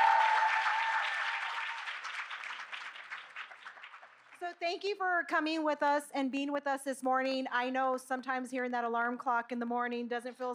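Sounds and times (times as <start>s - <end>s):
faint cheering: 0.0s - 2.0s
audience clapping: 0.0s - 4.6s
speech: 4.4s - 10.5s.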